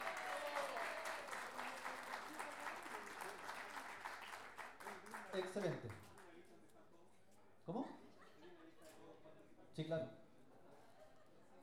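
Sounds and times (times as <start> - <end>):
faint audience applause at an improvised poetry tournament: 0.0 - 6.5
speech: 5.4 - 6.2, 7.7 - 7.9, 9.8 - 10.2.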